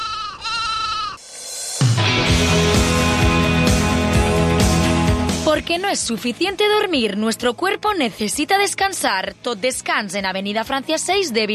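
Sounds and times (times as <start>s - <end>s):
sheep bleating: 0.0s - 1.2s
musical backing: 1.8s - 8.8s
speech: 5.7s - 11.5s.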